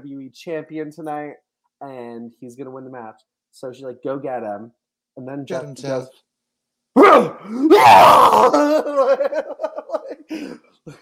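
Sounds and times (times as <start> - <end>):
speech: 0.0 - 6.3, 6.9 - 11.0
person yelling in imitation of someone shrieking: 7.0 - 10.0
choppy laughter-like bursts: 8.5 - 11.0.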